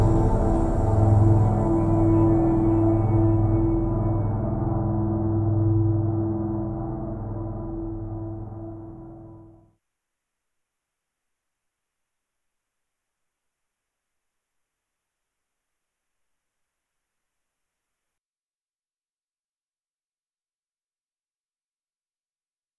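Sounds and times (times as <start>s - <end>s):
dark ambient film music: 0.0s - 9.6s.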